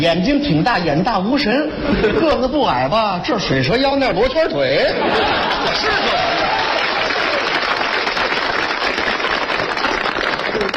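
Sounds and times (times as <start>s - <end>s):
speech: 0.0s - 6.5s
laughter: 1.8s - 2.5s, 4.8s - 7.4s
reluctant audience applause: 5.2s - 10.7s.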